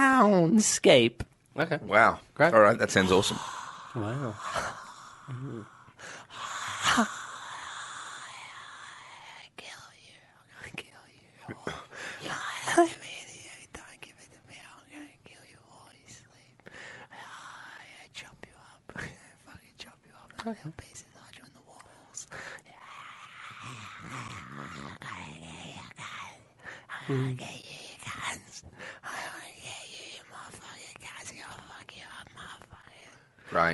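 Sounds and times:
speech: 0:00.2 - 0:06.2, 0:07.0 - 0:07.2, 0:12.8 - 0:13.0, 0:20.4 - 0:20.9, 0:27.1 - 0:27.6, 0:33.5 - 0:33.7
vocal imitation of a rainforest soundscape: 0:23.2 - 0:26.0.

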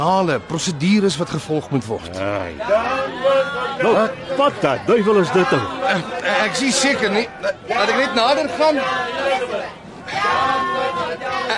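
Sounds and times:
protesting crowd shouting slogans: 0:00.0 - 0:11.5
speech: 0:00.0 - 0:11.5.

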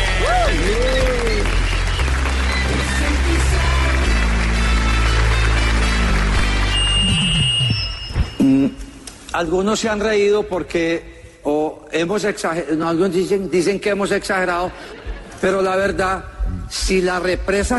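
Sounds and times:
audience applause: 0:00.0 - 0:07.6
speech: 0:09.4 - 0:17.7.

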